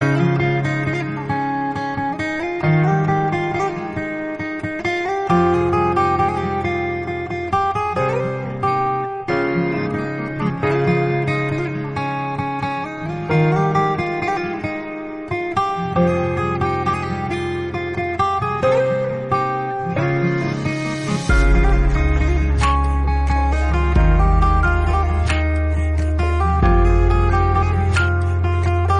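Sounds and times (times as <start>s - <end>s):
guitar instrumental: 0.0s - 28.9s.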